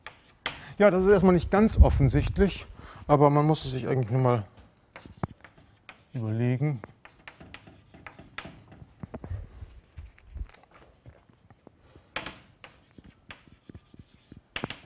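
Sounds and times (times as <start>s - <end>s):
writing on a board during a mathematics lecture on stability: 0.0s - 0.6s, 4.6s - 14.8s
speech: 0.8s - 4.5s, 6.1s - 6.9s.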